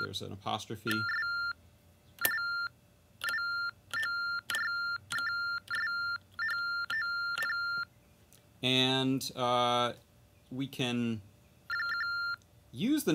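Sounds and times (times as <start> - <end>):
speech: 0.1 - 1.2, 8.6 - 11.3, 12.7 - 13.1
electronic keypad beeping as keys are typed: 0.9 - 1.6, 2.2 - 7.9, 11.7 - 12.4.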